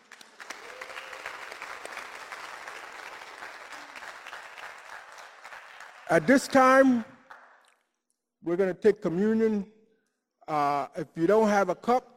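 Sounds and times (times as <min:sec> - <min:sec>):
audience applauding: 0:00.0 - 0:07.8
speech: 0:06.1 - 0:07.1, 0:08.5 - 0:09.7, 0:10.5 - 0:12.1.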